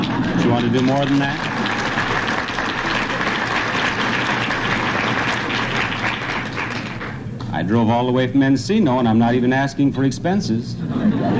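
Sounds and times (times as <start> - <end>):
audience applause: 0.0 - 7.3
speech: 0.6 - 1.5, 7.6 - 11.3
laughter: 10.8 - 11.3.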